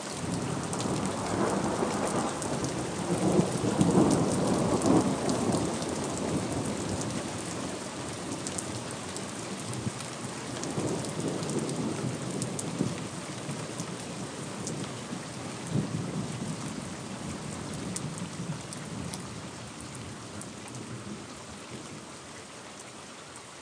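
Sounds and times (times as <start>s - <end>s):
thunderstorm: 0.1s - 8.5s, 9.6s - 21.3s.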